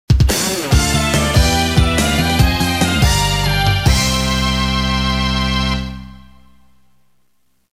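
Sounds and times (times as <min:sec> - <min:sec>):
stage clear jingle: 0:00.4 - 0:06.6.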